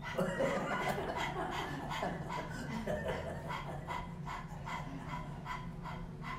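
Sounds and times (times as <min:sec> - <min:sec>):
chuckling: 0:00.0 - 0:05.4
people panting imitating a dog: 0:00.0 - 0:06.3.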